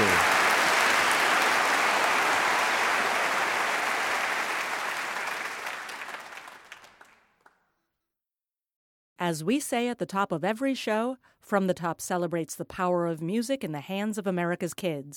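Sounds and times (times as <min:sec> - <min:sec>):
audience applause: 0:00.0 - 0:07.5
speech: 0:09.3 - 0:15.1.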